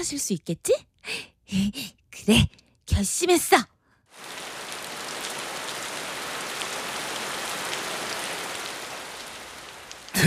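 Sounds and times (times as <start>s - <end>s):
speech: 0.0s - 4.4s
pouring rain: 4.1s - 10.2s.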